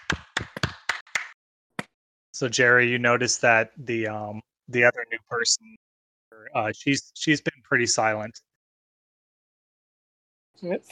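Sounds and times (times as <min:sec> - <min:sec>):
group clapping: 0:00.0 - 0:01.9
speech: 0:02.4 - 0:05.8, 0:06.4 - 0:08.5, 0:10.6 - 0:10.9.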